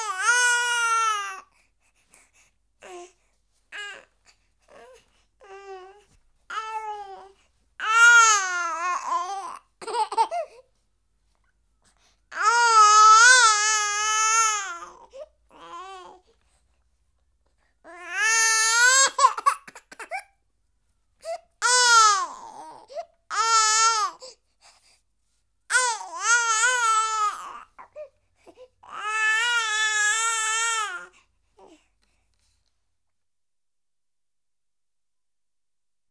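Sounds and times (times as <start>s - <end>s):
month-old baby girl crying in a temper tantrum: 0.0s - 1.4s, 6.5s - 10.4s, 12.3s - 15.0s, 17.9s - 20.2s, 21.6s - 24.2s, 25.7s - 27.7s, 28.8s - 31.1s.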